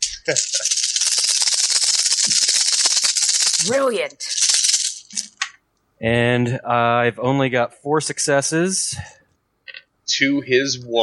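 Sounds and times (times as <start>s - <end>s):
handful of dice clattering: 0.0s - 5.6s
speech: 0.3s - 0.7s, 3.6s - 4.4s, 6.0s - 9.2s, 10.1s - 11.0s.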